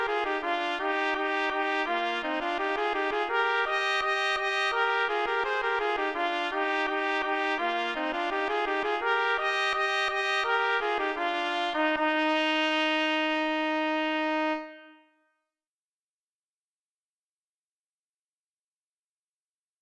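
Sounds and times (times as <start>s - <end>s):
rondeau trumpet duet: 0.0s - 15.2s.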